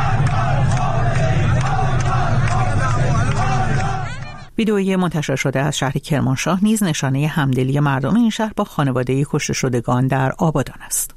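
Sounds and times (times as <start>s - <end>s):
crowd chanting slogans in the street: 0.0s - 4.5s
speech: 4.6s - 11.1s.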